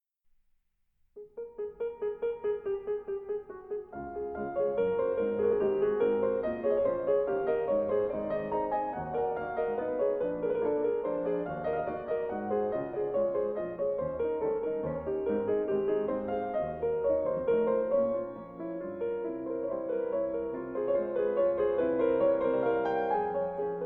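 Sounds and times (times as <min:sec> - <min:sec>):
study in D flat major: 0:00.0 - 0:23.8.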